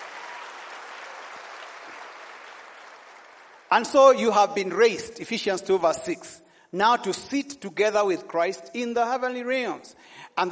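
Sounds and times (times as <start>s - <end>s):
audience hand clapping: 0.0s - 4.1s
speech: 3.7s - 10.4s.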